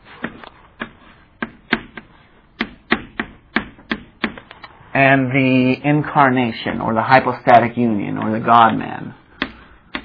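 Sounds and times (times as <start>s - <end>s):
writing on a board: 0.0s - 4.5s, 9.4s - 10.0s
speech: 5.0s - 9.2s.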